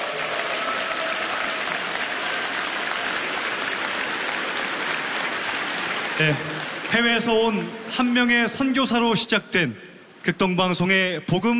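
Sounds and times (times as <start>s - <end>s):
sustained applause from a large audience: 0.0s - 8.2s
speech: 6.2s - 11.5s.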